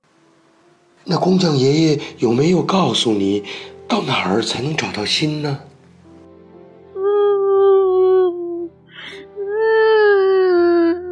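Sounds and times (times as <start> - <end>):
speech: 1.0 - 5.7
voice imitating a wooden puppet crying and sobbing: 7.0 - 11.1.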